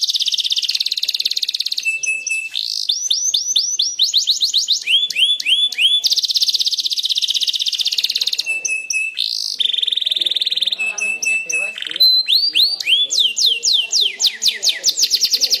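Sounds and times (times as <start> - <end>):
standard canary singing: 0.0 - 15.5.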